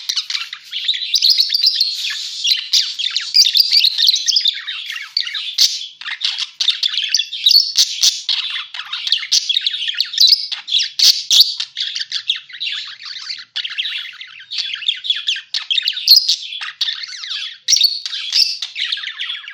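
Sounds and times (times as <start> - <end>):
parakeet chatter: 0.0 - 19.5.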